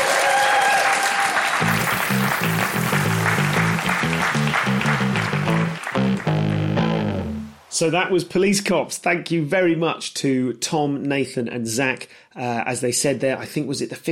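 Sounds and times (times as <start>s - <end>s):
audience applause and cheering: 0.0s - 7.1s
bouncy rhythmic bass-heavy tune: 1.6s - 7.6s
speech: 7.8s - 14.1s.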